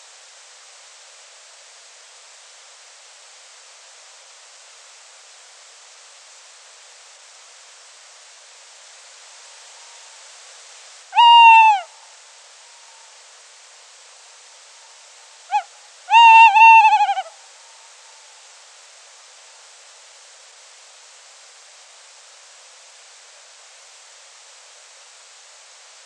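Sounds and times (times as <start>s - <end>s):
tawny owl call: 11.2s - 13.2s, 15.5s - 17.9s.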